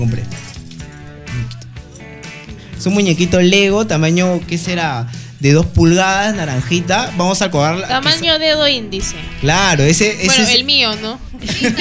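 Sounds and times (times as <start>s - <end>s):
speech: 0.0s - 0.5s, 2.8s - 11.7s
keychains jangling: 0.0s - 3.4s
laughter: 9.1s - 11.7s.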